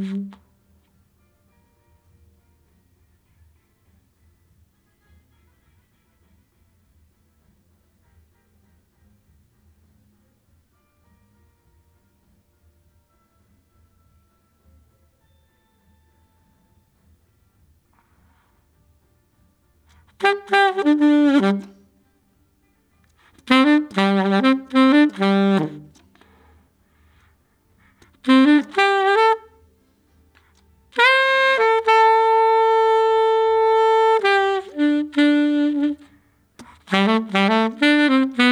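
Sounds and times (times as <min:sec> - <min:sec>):
saxophone: 0:00.0 - 0:00.6, 0:20.0 - 0:22.0, 0:23.2 - 0:26.6, 0:27.8 - 0:29.8, 0:30.4 - 0:38.5.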